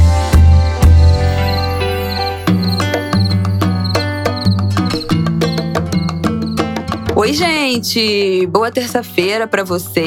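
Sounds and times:
cricket chirping: 0:00.2 - 0:07.1
speech: 0:07.3 - 0:10.0.

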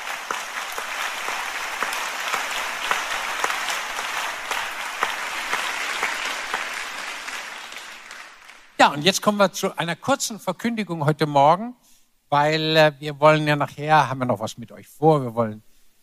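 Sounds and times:
audience applause: 0:00.0 - 0:09.0
speech: 0:08.8 - 0:15.7.

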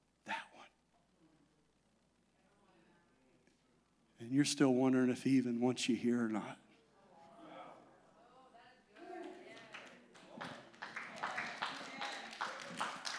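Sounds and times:
speech: 0:04.2 - 0:06.6
audience applause: 0:09.1 - 0:13.1.

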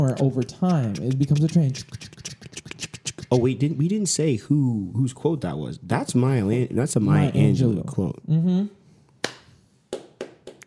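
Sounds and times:
speech: 0:00.0 - 0:02.2, 0:03.3 - 0:08.8
slow hand clapping: 0:09.2 - 0:10.6.

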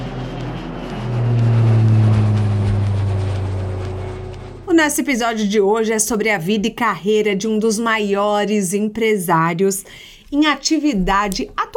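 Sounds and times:
small jet taking off in a show intro sting: 0:00.0 - 0:05.4
speech: 0:04.8 - 0:11.6.

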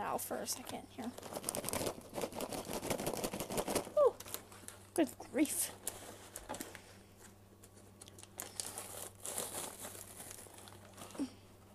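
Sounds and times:
speech: 0:00.0 - 0:02.4, 0:05.0 - 0:05.9
hot popcorn bag being pulled open: 0:01.1 - 0:04.9, 0:05.6 - 0:06.8, 0:08.0 - 0:11.4.

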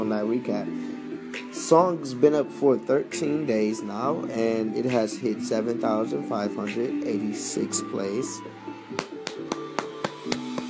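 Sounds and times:
speech: 0:00.2 - 0:09.0
hand clapping: 0:01.3 - 0:01.6, 0:06.6 - 0:06.9, 0:08.9 - 0:10.6.

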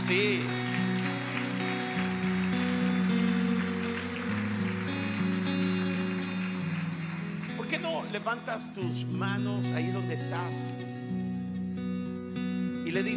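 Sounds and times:
audience applause: 0:00.0 - 0:08.8
sustained keyboard chords: 0:00.0 - 0:13.1
speech: 0:00.1 - 0:00.8, 0:08.1 - 0:10.9, 0:12.9 - 0:13.1.

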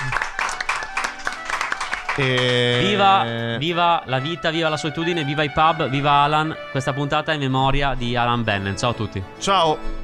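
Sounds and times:
hands clapping: 0:00.0 - 0:03.6
speech: 0:02.2 - 0:10.0.

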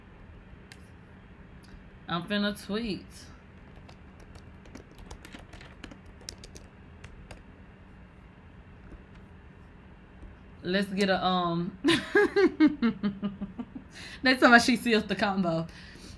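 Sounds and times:
speech: 0:02.1 - 0:03.3, 0:10.6 - 0:15.9
typing on a computer keyboard: 0:03.6 - 0:07.4.

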